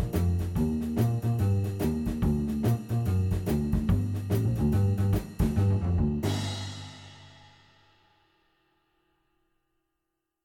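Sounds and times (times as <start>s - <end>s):
jazz shuffle piano play-along track: 0.0s - 6.5s.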